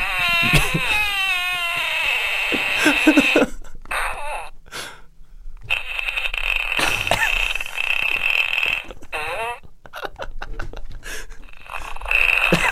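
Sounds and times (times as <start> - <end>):
wet fart from a fart sound maker: 0.0 - 4.1, 5.6 - 9.7, 11.5 - 12.7.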